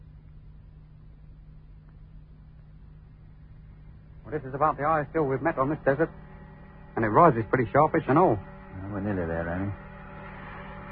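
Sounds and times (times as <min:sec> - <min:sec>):
motor vehicle engine running for a drive across the desert: 0:03.2 - 0:10.8
speech: 0:04.3 - 0:06.2, 0:07.0 - 0:09.8.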